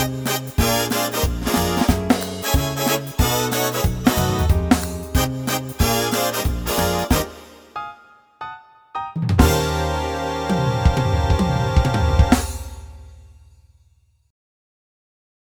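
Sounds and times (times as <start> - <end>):
PA600 accompaniment styles: 0.0 - 7.8, 9.3 - 13.3.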